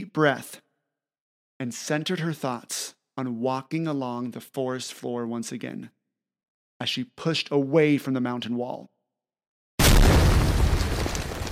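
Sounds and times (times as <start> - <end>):
speech: 0.2 - 0.6, 1.6 - 6.0, 6.8 - 8.9
explosion sound effect: 9.8 - 11.5
rumbling spray of dirt debris: 9.8 - 11.5.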